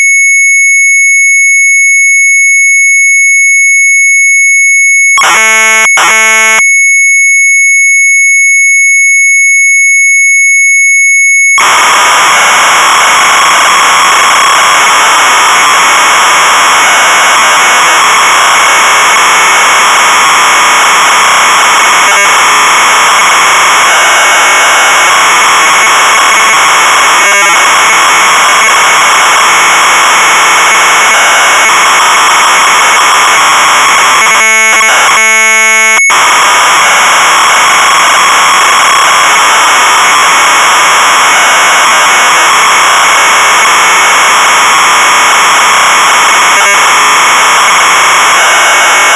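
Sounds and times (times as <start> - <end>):
Sharp MZ800 computer tape data signal: 0.2 - 6.7, 7.6 - 49.1.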